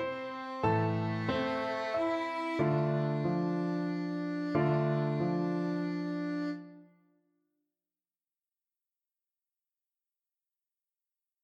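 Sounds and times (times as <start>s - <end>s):
violin: 0.0s - 6.9s
piano: 0.0s - 7.1s.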